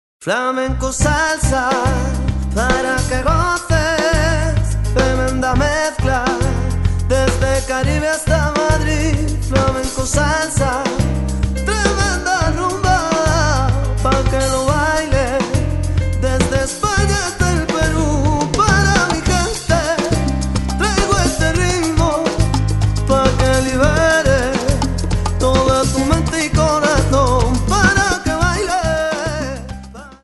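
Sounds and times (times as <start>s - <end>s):
flamenco salsa music: 1.2s - 30.2s.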